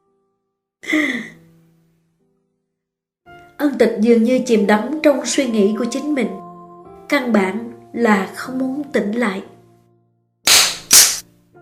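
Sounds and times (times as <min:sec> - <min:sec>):
speech: 0:00.8 - 0:01.3, 0:03.7 - 0:06.4, 0:07.1 - 0:09.5
slaps to the face: 0:10.5 - 0:11.2.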